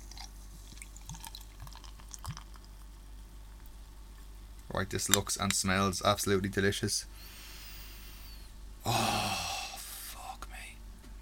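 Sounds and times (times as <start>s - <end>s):
porter beer poured into a glass: 0.0s - 2.8s
speech: 4.7s - 7.3s.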